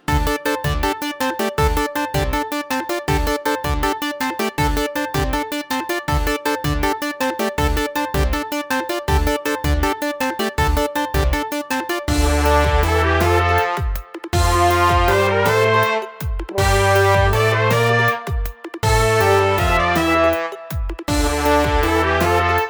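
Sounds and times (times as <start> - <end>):
bright funny background music: 0.2 - 22.6.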